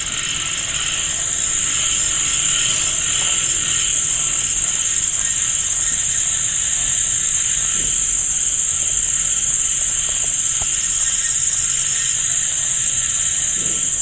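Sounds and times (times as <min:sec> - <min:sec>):
frogs croaking: 0:00.0 - 0:14.0
rain: 0:00.0 - 0:14.0.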